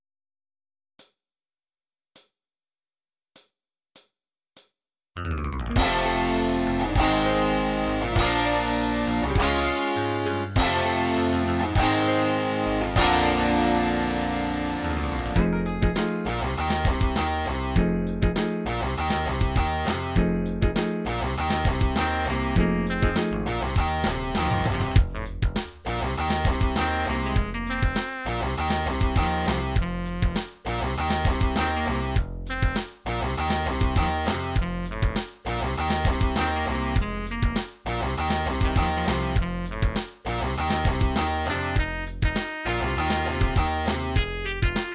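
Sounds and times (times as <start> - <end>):
blues music: 5.2 - 44.9.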